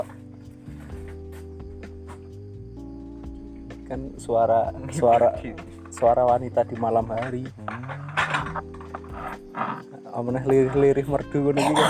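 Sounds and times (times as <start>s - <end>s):
speech: 3.9s - 7.7s, 9.6s - 11.8s
dishes clinking while being washed: 6.8s - 9.8s.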